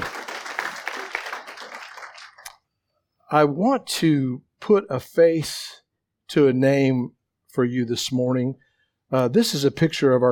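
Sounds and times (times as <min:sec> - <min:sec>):
audience clapping: 0:00.0 - 0:02.6
speech: 0:03.3 - 0:10.3.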